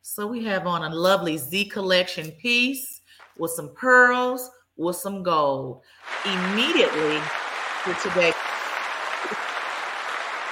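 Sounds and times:
speech: 0.1s - 8.3s
round of applause: 6.0s - 10.5s.

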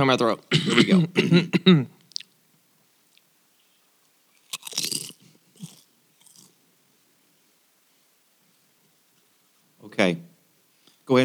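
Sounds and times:
speech: 0.0s - 2.0s, 10.0s - 10.3s, 11.1s - 11.2s
chewing potato chips: 2.0s - 2.4s, 4.3s - 6.6s
crunching potato chips into microphone: 4.3s - 6.6s.

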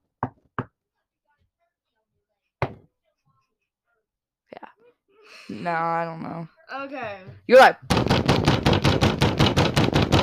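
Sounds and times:
knocking on a surface: 2.6s - 2.9s, 7.9s - 10.2s
speech: 5.4s - 8.5s.

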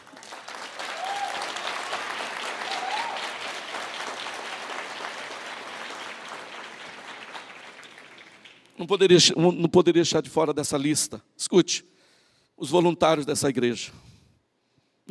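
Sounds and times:
church audience applauding: 0.0s - 8.8s
speech: 8.8s - 11.9s, 12.6s - 14.1s.

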